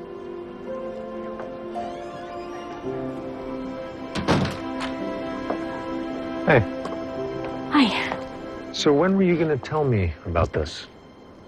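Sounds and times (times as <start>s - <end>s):
sustained music tones: 0.0s - 11.4s
front door opening and closing: 1.7s - 3.2s, 4.0s - 5.0s
speech: 6.5s - 6.8s, 8.8s - 10.9s.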